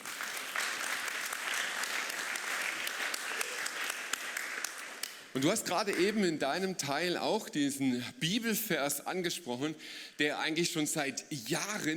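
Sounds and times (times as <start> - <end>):
audience applause: 0.0 - 5.2
speech: 5.4 - 11.9.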